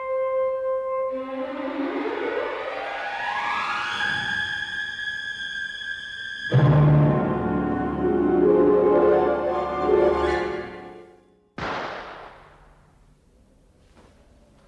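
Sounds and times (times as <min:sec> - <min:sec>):
swelling music: 0:00.1 - 0:11.4
gunshot at night: 0:11.6 - 0:12.8
sharp bang: 0:11.6 - 0:13.0.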